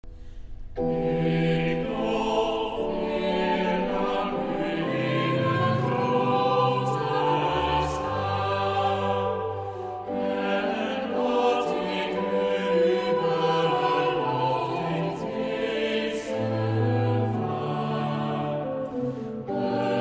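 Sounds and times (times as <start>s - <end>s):
vocal psalm singing: 0.0s - 19.9s.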